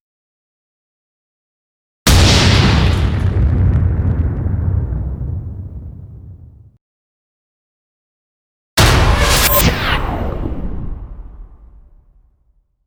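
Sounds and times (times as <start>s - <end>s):
explosion: 2.1s - 6.8s, 8.8s - 12.2s.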